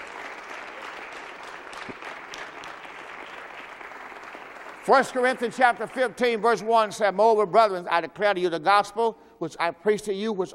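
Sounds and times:
crowd clapping: 0.0s - 6.7s
speech: 4.8s - 10.5s.

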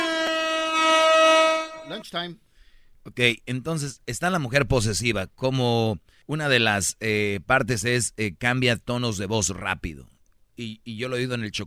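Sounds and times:
horn (corneta) sound effect: 0.0s - 2.0s
speech: 2.0s - 11.6s.

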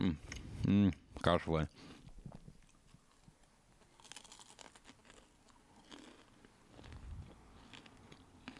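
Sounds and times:
speech: 0.0s - 2.0s
crunchy chewing in ASMR style: 2.3s - 8.5s.

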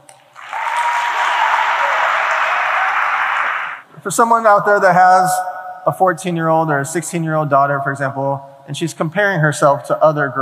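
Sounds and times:
audience clapping: 0.3s - 3.8s
speech: 4.0s - 10.3s.

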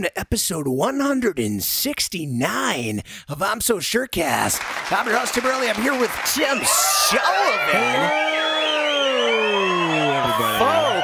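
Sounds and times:
speech: 0.0s - 8.4s
crowd cheering: 4.6s - 11.0s.

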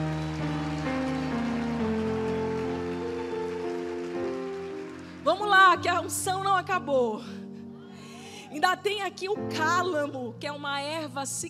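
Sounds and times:
audience applauding: 0.0s - 5.8s
speech: 5.2s - 7.4s, 8.5s - 11.4s.

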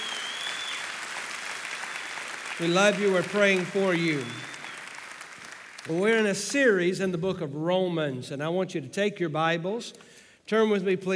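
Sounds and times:
audience applauding: 0.0s - 6.5s
speech: 2.6s - 4.5s, 5.8s - 11.1s.

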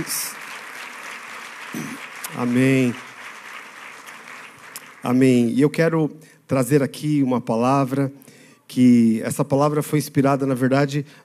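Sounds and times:
speech: 0.0s - 0.3s, 2.4s - 3.1s, 5.0s - 11.2s
audience applause: 0.0s - 5.5s.

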